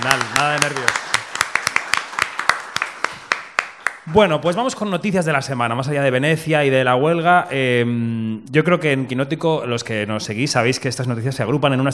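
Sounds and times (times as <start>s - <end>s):
speech: 0.0s - 1.0s, 4.1s - 11.9s
applause: 0.0s - 4.1s.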